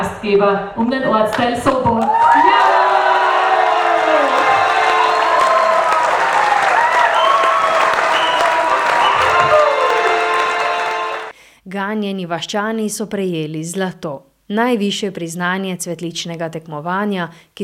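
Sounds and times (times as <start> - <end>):
speech: 0.2 - 2.7, 11.7 - 17.6
cheering and whoops: 2.0 - 11.3
large crowd applause: 2.0 - 11.3.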